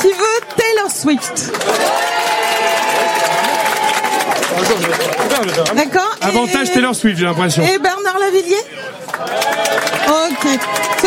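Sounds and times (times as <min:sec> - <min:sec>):
speech: 0:01.0 - 0:02.0, 0:04.6 - 0:11.0
audience applause for a vote: 0:01.2 - 0:07.3, 0:08.8 - 0:11.0
audience cheering: 0:01.5 - 0:06.9, 0:09.1 - 0:11.0.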